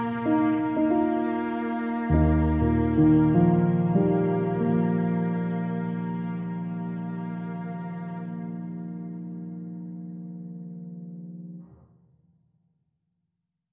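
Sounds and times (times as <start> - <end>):
melancholy violin: 0.0 - 10.8.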